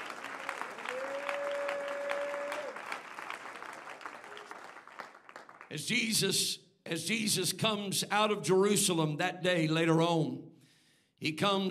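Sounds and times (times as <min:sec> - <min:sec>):
audience clapping in a large room: 0:00.0 - 0:06.1
speech: 0:05.7 - 0:10.5, 0:11.2 - 0:11.6.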